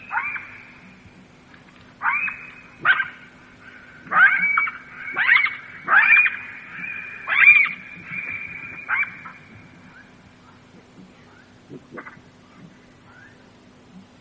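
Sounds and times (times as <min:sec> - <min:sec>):
jackals yelping and wailing: 0:00.0 - 0:01.1, 0:02.0 - 0:10.7.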